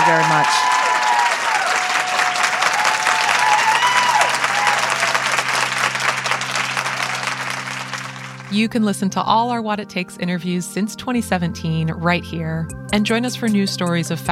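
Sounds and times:
audience applause: 0:00.0 - 0:08.6
speech: 0:00.1 - 0:00.9, 0:08.5 - 0:14.3.

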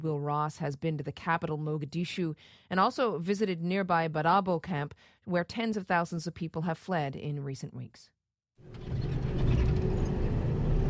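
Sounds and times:
speech: 0:00.0 - 0:09.2
armored military vehicle with mounted machine guns driving in Mogadishu: 0:08.6 - 0:10.8.

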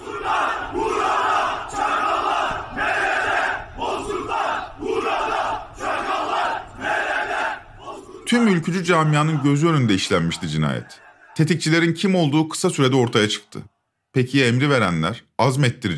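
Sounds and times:
angry funeral crowd shouting slogans: 0:00.0 - 0:11.5
speech: 0:08.3 - 0:15.9.

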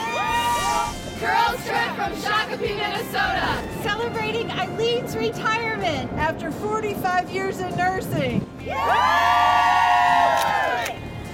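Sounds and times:
outdoor crowd cheering: 0:00.0 - 0:01.1, 0:08.6 - 0:11.1
speech: 0:01.2 - 0:09.8.

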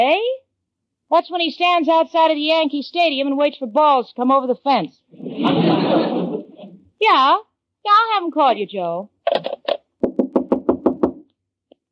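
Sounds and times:
speech: 0:00.0 - 0:00.4, 0:01.1 - 0:06.2, 0:07.0 - 0:09.6
laughter: 0:05.4 - 0:06.7
knocking on a door: 0:10.0 - 0:11.3.

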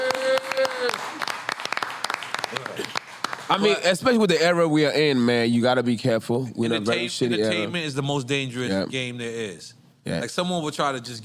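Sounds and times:
scattered audience applause: 0:00.0 - 0:03.6
speech: 0:03.5 - 0:11.2.

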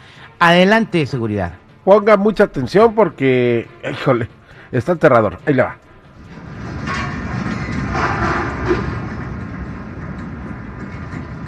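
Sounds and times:
speech: 0:00.4 - 0:05.8
building foundations shaking in an earthquake: 0:06.1 - 0:11.4.

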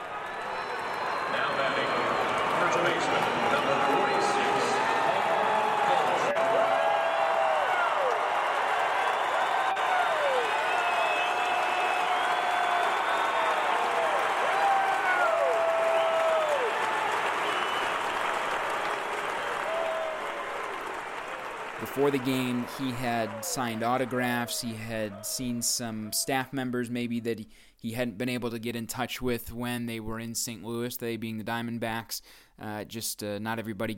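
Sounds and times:
baseball crowd giving rousing applause: 0:00.0 - 0:26.2
sharp whistles: 0:10.5 - 0:13.8, 0:17.4 - 0:18.2
speech: 0:22.0 - 0:33.9.

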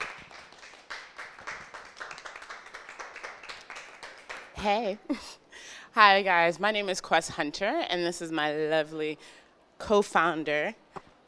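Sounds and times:
audience clapping to welcome guests: 0:00.0 - 0:04.6
speech: 0:04.6 - 0:10.8.

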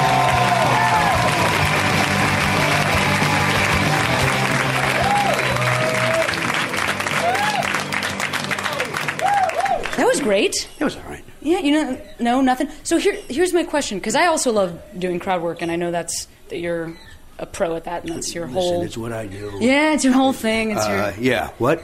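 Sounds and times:
whoops and cheers: 0:00.0 - 0:07.9, 0:08.6 - 0:10.0
crowd clapping: 0:00.0 - 0:10.3
speech: 0:10.3 - 0:21.8.

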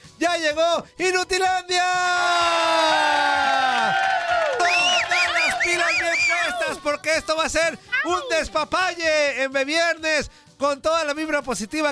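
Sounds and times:
speech: 0:00.2 - 0:04.1, 0:05.7 - 0:11.8
voices whooping and shouting: 0:01.8 - 0:07.0
crowd cheering and applauding: 0:02.3 - 0:06.8.

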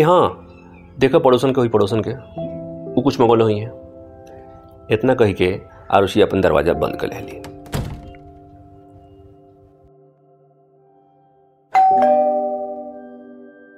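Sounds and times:
speech: 0:00.0 - 0:00.4, 0:01.0 - 0:03.8, 0:04.9 - 0:07.5
doorbell chiming: 0:11.7 - 0:13.7.

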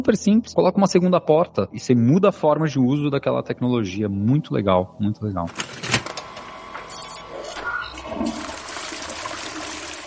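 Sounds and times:
speech: 0:00.0 - 0:05.9
toilet flushing: 0:07.3 - 0:10.0.

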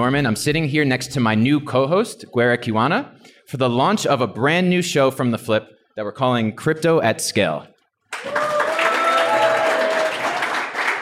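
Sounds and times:
speech: 0:00.0 - 0:08.5
live audience applause in Nairobi at a show launch taping: 0:08.1 - 0:11.0.

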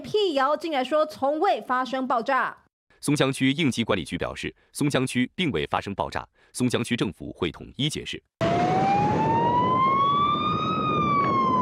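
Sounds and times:
speech: 0:00.2 - 0:08.4
ambulance siren speeding past: 0:08.4 - 0:11.5.

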